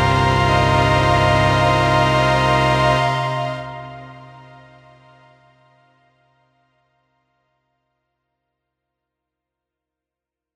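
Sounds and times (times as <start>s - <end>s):
synth orchestra poly viola: 0.0s - 6.1s.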